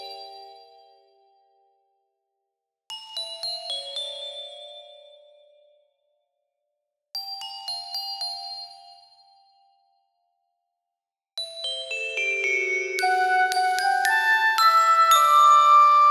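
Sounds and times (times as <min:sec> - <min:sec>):
puzzled quirky classical underscore: 0:13.0 - 0:16.0.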